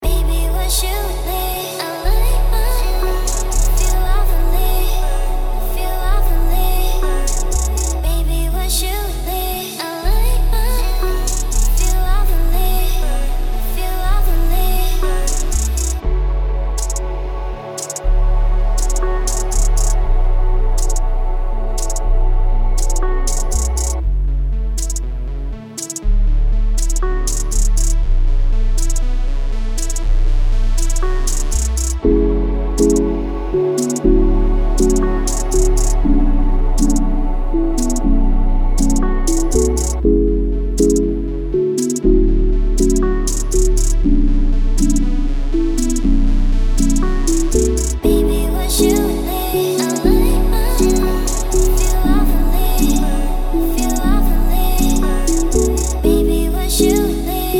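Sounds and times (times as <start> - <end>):
chill trap pop song: 0.0 - 26.0, 26.8 - 28.0, 28.7 - 29.1, 29.7 - 57.5.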